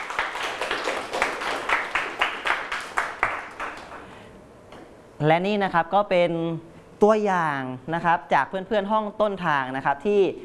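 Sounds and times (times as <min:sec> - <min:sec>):
group of students clapping: 0:00.0 - 0:04.2
speech: 0:05.2 - 0:10.4.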